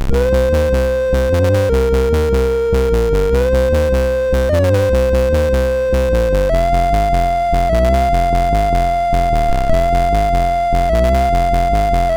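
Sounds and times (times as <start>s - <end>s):
SID MOS6581R2 chiptune game music: 0.1s - 12.1s.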